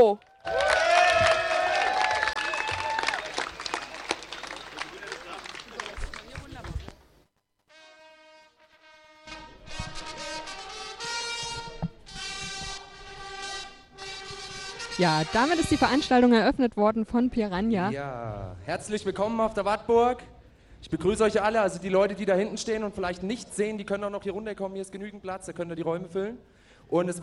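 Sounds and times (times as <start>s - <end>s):
speech: 0.0s - 0.6s, 15.0s - 27.2s
audience applause and cheering: 0.0s - 6.9s.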